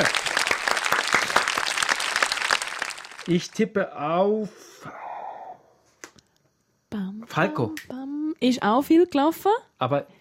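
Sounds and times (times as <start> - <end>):
applause: 0.0 - 3.5
speech: 3.3 - 5.0, 6.9 - 10.1.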